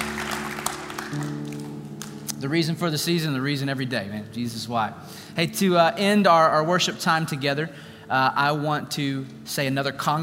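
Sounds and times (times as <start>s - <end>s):
audience applause: 0.0s - 2.1s
speech: 1.1s - 1.4s, 2.4s - 10.2s.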